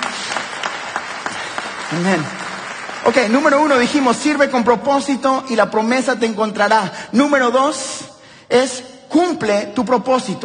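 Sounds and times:
audience applause: 0.0s - 4.1s
speech: 1.9s - 2.4s, 3.1s - 10.4s.

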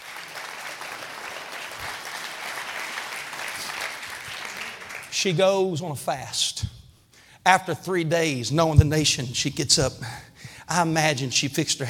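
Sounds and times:
audience clapping hands: 0.0s - 5.3s
speech: 5.2s - 6.7s, 7.4s - 11.8s.

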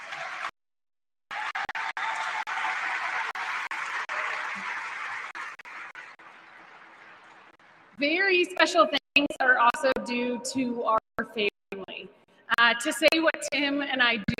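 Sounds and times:
audience applause: 0.0s - 0.5s, 1.3s - 8.0s
speech: 8.0s - 11.5s, 12.7s - 14.3s.

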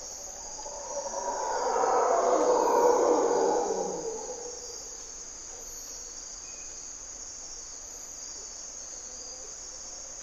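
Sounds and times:
insects droning: 0.0s - 10.2s
mantled howler monkey roaring: 0.4s - 4.6s.

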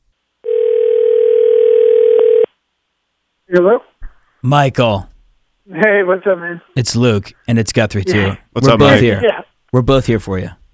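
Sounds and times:
telephone line dial tone: 0.4s - 2.5s
speech: 3.5s - 5.1s, 5.7s - 10.6s.

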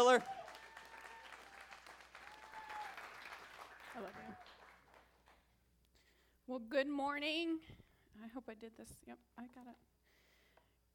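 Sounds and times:
speech: 0.0s - 0.4s, 6.5s - 9.9s
church audience applause welcoming a speaker to the stage: 0.0s - 5.4s.

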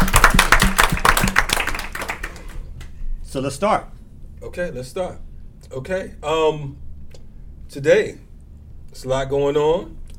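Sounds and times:
audience applause: 0.0s - 2.6s
speech: 3.3s - 6.8s, 7.7s - 8.2s, 8.9s - 10.0s.

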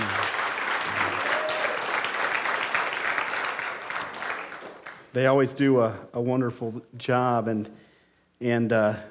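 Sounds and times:
audience applause: 0.0s - 5.1s
speech: 5.2s - 7.8s, 8.4s - 9.0s.

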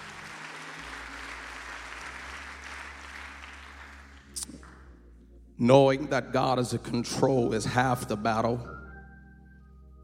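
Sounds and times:
audience clapping hands: 0.0s - 4.9s
speech: 5.6s - 8.8s.

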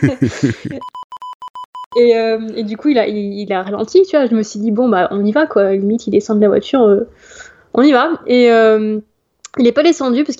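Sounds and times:
speech: 0.0s - 1.0s, 2.0s - 10.3s
censor bleep tone: 0.8s - 2.1s.

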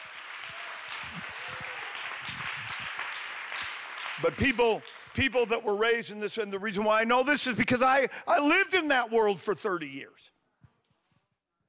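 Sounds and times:
crowd clapping hands: 0.0s - 6.0s
speech: 4.2s - 10.4s.

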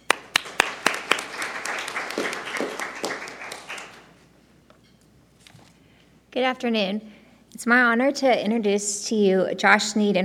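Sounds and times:
audience applause: 0.1s - 4.1s
speech: 6.4s - 10.2s.

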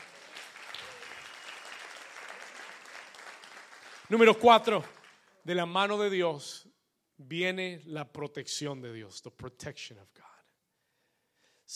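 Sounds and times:
loud steady applause from many hands: 0.0s - 5.5s
speech: 4.1s - 10.3s.

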